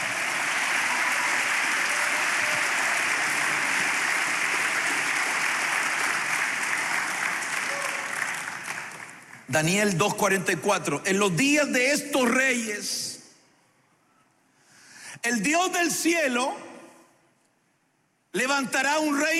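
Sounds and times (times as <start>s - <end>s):
crowd applause: 0.0s - 9.5s
speech: 9.5s - 13.1s, 15.4s - 16.6s, 18.3s - 19.3s.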